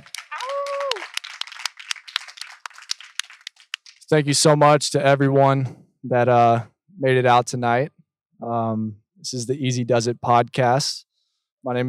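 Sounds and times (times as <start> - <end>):
audience applause: 0.0 - 4.1
speech: 4.1 - 11.8.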